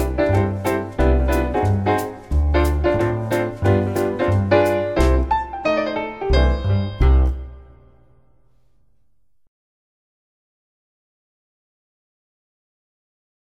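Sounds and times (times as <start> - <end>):
quick jazz music: 0.0 - 8.1.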